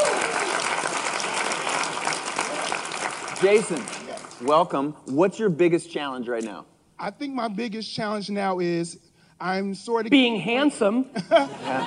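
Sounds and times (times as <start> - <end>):
audience applause at a photography expo fireside chat: 0.0 - 4.7
speech: 3.4 - 11.8
laughter: 11.1 - 11.8.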